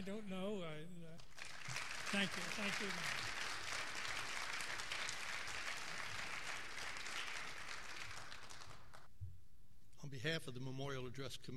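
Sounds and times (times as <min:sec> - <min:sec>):
speech: 0:00.0 - 0:03.3, 0:10.0 - 0:11.5
audience applause after a memorial address: 0:01.2 - 0:09.1.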